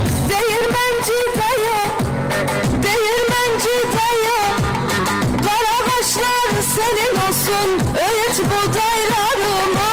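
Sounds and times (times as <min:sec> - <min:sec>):
bass: 0:00.0 - 0:09.9.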